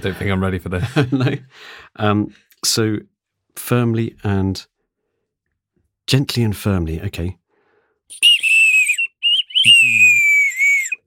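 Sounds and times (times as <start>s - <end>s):
speech: 0.0s - 4.7s, 6.1s - 7.4s, 8.1s - 8.3s
nightingale bird-call whistle being blown: 8.1s - 11.0s.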